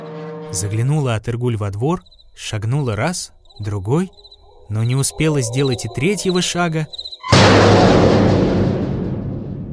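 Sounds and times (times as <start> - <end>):
speech: 0.5 - 8.2
heavy iron gate slamming shut: 7.2 - 9.7.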